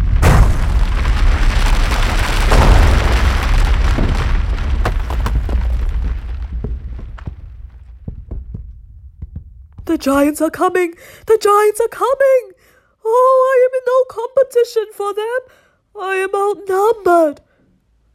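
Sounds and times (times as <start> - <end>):
boulders crashing onto the ground: 0.0 - 10.4
speech: 10.0 - 17.4.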